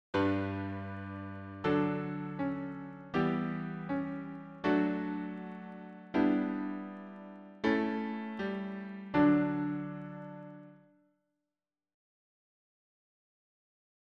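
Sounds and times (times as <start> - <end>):
piano harmony: 0.1 - 10.8.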